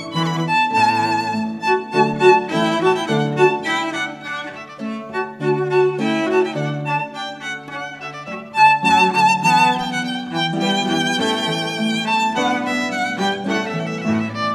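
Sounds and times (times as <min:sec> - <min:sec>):
classical music piece: 0:00.0 - 0:14.5.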